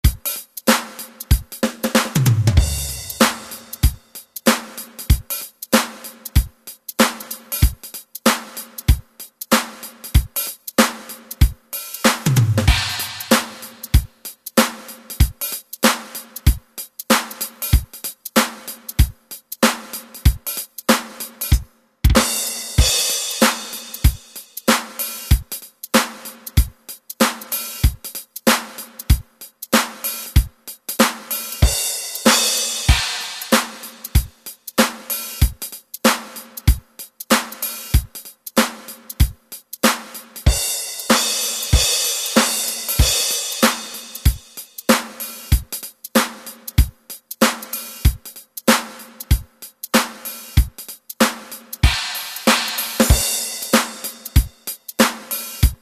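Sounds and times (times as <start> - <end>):
funk music: 0.0 - 55.8.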